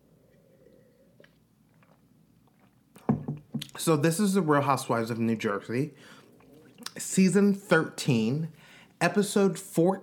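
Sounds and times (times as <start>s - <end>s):
person sipping water: 0.0s - 3.7s, 6.0s - 7.1s
faint wet swallowing: 0.1s - 3.7s, 6.0s - 7.0s
drink set down clunk: 3.0s - 3.7s
speech: 3.8s - 6.2s, 7.0s - 10.0s.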